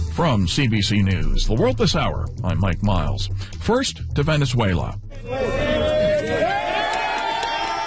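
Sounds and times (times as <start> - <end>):
speech: 0.2 - 5.7
crowd cheering as Spanish rescue teams pull a survivor from rubble: 5.1 - 7.8.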